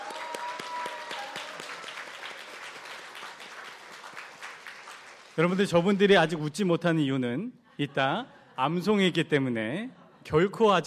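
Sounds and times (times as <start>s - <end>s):
audience applause for graduates: 0.0s - 6.2s
speech: 5.4s - 10.8s.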